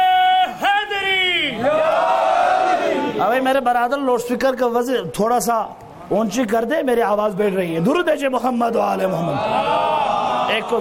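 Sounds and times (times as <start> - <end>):
crowd shouting a religious slogan at a religious gathering: 0.0 - 3.3, 9.2 - 10.7
speech: 3.5 - 10.7.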